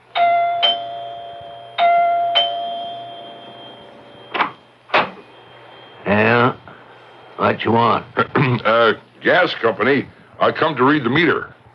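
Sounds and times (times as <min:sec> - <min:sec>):
doorbell ringing: 0:00.0 - 0:06.5
speech: 0:07.5 - 0:11.6.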